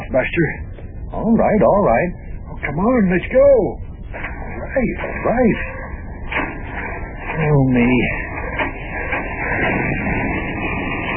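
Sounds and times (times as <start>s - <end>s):
old car engine sputtering to start: 0.0s - 11.1s
speech: 0.1s - 3.8s, 4.7s - 5.8s, 7.4s - 8.2s.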